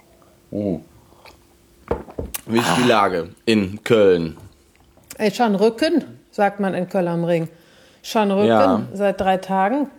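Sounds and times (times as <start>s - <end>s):
speech: 0.5s - 0.9s, 2.5s - 4.4s, 5.2s - 9.9s
person drinking a big gulp of coffee: 2.3s - 3.1s.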